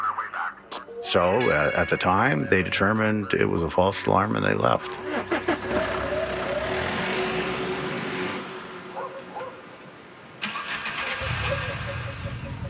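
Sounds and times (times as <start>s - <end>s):
speech: 1.0s - 5.4s
car engine starting: 4.4s - 12.6s.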